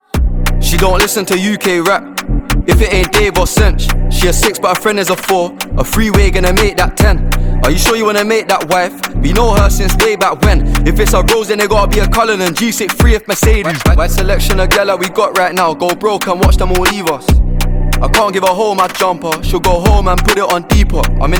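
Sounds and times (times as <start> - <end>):
British rap ringtone: 0.1 - 21.3.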